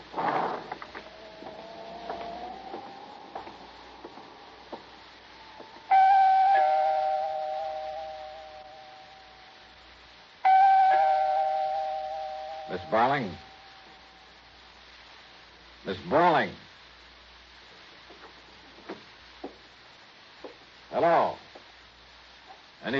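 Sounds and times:
apartment doorbell ringing: 5.8s - 9.4s, 10.4s - 14.0s
speech: 12.9s - 13.5s, 15.9s - 16.6s.

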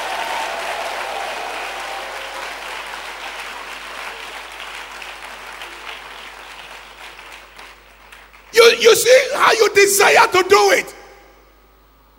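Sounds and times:
audience clapping: 0.0s - 8.8s
speech: 8.8s - 11.0s.

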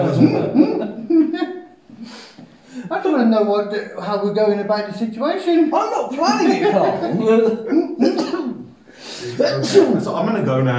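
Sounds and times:
speech: 0.0s - 0.6s, 3.2s - 8.3s, 9.3s - 10.7s
laughter: 0.0s - 2.1s, 5.9s - 10.1s
person sneezing: 8.0s - 9.9s.

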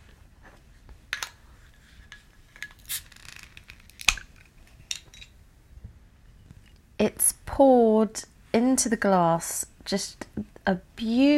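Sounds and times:
beer being opened: 2.6s - 5.2s
speech: 7.1s - 11.3s.

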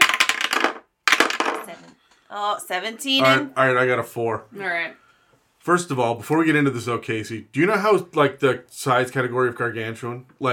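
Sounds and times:
dice clattering across a hard table: 0.0s - 2.0s
speech: 2.3s - 5.0s, 5.6s - 10.5s.

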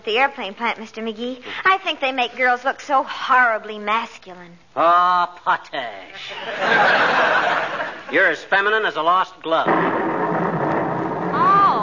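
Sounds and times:
speech: 0.0s - 10.0s
laughter: 6.3s - 8.4s
thunder storm sound effect: 9.7s - 11.8s.

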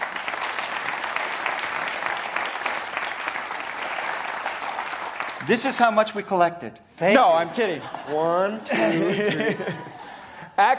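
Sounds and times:
audience clapping welcoming a man to the stage: 0.0s - 6.0s
speech: 5.4s - 9.9s, 10.6s - 10.7s
laughter: 7.2s - 10.6s.

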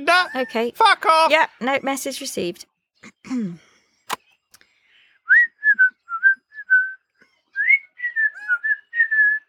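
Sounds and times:
speech: 0.2s - 3.6s
birds whistling: 4.0s - 9.4s.

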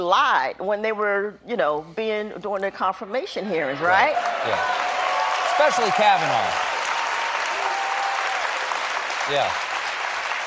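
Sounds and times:
speech: 0.0s - 4.9s, 5.6s - 6.7s, 9.3s - 9.6s
massive crowd applause: 4.0s - 10.4s.

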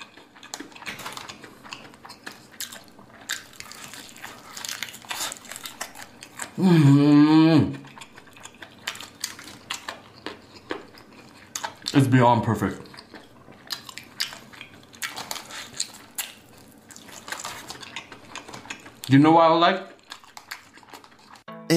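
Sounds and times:
crunchy biting and chewing of chicken: 0.0s - 6.6s, 7.7s - 12.0s, 12.7s - 19.2s, 19.8s - 21.5s
speech: 6.6s - 7.1s, 12.0s - 12.9s, 19.1s - 19.9s
person's sustained voiced mmm of enjoyment: 6.6s - 7.8s.

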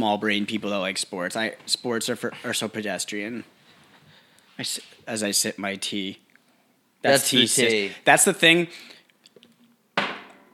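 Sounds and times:
speech: 0.0s - 3.6s, 4.6s - 6.2s, 7.0s - 9.0s
coffee mug slammed down hard: 10.0s - 10.5s.

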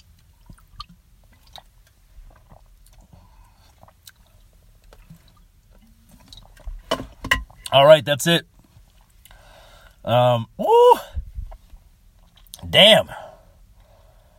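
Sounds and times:
person swallowing and gulping a drink: 0.2s - 6.6s
speech: 7.7s - 8.5s, 10.1s - 11.0s, 12.8s - 13.2s.

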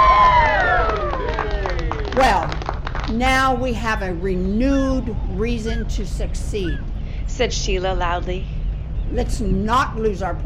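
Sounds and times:
crowd cheering: 0.0s - 3.2s
speech: 3.1s - 10.4s.

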